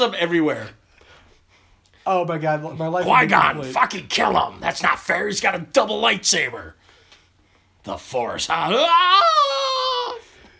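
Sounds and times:
speech: 0.0 - 0.8, 2.1 - 6.8, 7.8 - 9.6
Wilhelm scream: 3.0 - 4.5, 8.5 - 10.3.

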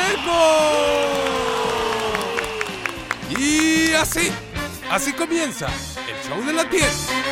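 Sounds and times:
audience applause: 0.0 - 4.6
speech: 3.3 - 7.2.

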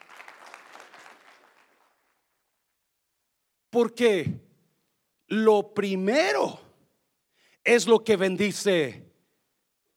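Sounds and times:
audience applauding: 0.0 - 2.4
speech: 3.8 - 4.4, 5.3 - 6.6, 7.6 - 9.1.

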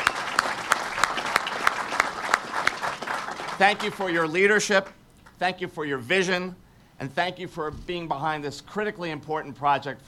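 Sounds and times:
audience applause: 0.0 - 4.6
speech: 3.6 - 10.0.

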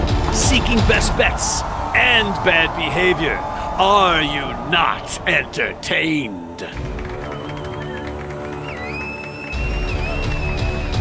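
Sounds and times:
crowd applauding and cheering: 0.0 - 11.0
speech: 0.4 - 6.9
high whistles: 7.0 - 11.0.

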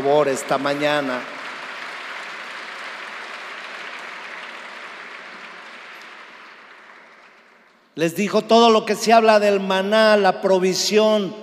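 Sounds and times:
speech: 0.0 - 1.4, 8.0 - 11.4
audience applauding: 0.0 - 7.8.

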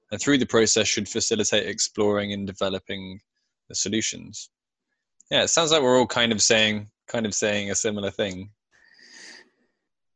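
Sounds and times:
speech: 0.1 - 4.6, 5.3 - 8.6
sharp intake of breath during a group discussion: 9.0 - 9.4.

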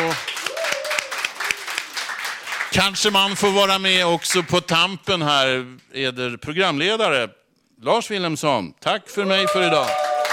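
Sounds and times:
applause: 0.0 - 4.6, 9.4 - 10.3
speech: 2.7 - 10.0.

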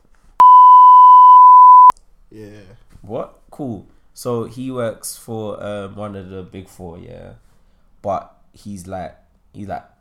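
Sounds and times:
censor bleep: 0.4 - 1.9
speech: 2.3 - 9.9.

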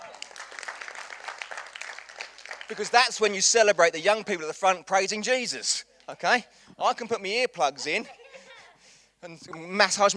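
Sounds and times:
audience applause: 0.0 - 3.4
speech: 2.7 - 8.2, 9.2 - 10.1.

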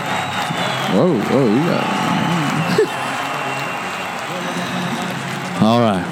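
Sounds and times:
crowd cheering: 0.0 - 6.1
laughter: 0.0 - 6.1
speech: 0.9 - 2.0, 5.6 - 6.1.

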